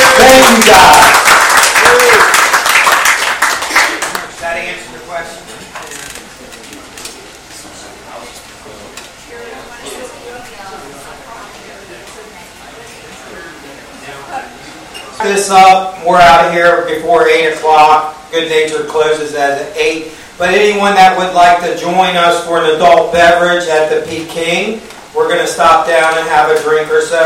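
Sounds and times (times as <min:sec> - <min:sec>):
audience applause: 0:00.0 - 0:04.3
speech: 0:00.2 - 0:01.2, 0:15.2 - 0:27.2.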